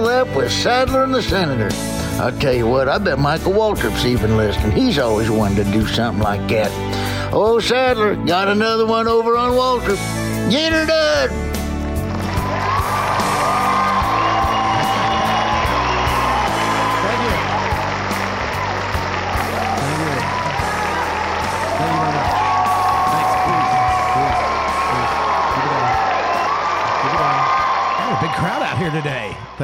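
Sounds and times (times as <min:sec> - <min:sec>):
speech: 0:00.2 - 0:11.4, 0:28.9 - 0:29.6
crowd cheering: 0:12.0 - 0:29.6.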